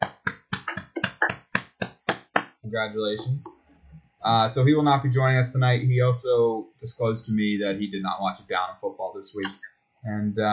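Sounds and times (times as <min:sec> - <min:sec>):
clapping: 0:00.0 - 0:02.5
speech: 0:02.7 - 0:03.6, 0:04.2 - 0:10.5.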